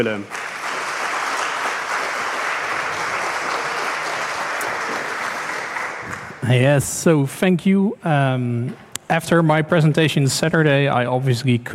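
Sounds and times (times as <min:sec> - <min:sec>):
speech: 0:00.0 - 0:00.4, 0:06.4 - 0:11.7
audience applause: 0:00.0 - 0:06.6.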